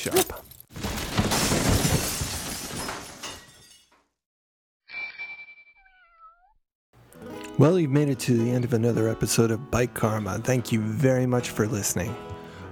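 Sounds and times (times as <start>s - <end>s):
speech: 0.0s - 0.4s, 7.6s - 12.7s
metallic crash of toppling tools and bike tool rack: 0.5s - 4.0s.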